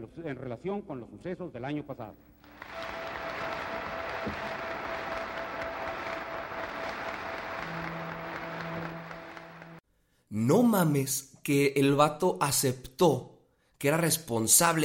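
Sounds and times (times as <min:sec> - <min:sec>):
speech: 0:00.0 - 0:03.0, 0:04.2 - 0:04.5, 0:10.3 - 0:14.8
crowd applauding: 0:02.4 - 0:09.8.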